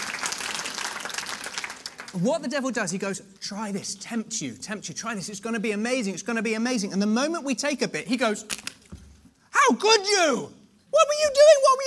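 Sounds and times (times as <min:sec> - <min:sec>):
applause: 0:00.0 - 0:02.3
speech: 0:02.1 - 0:08.7, 0:09.7 - 0:11.8.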